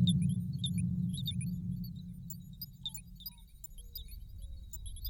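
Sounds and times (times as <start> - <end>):
shared soundscape: 0.0 - 3.7.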